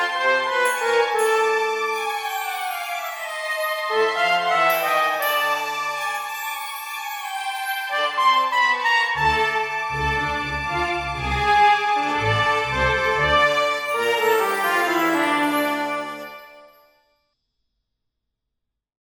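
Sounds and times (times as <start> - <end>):
film noir theme with horns: 0.0 - 6.5, 8.1 - 16.6.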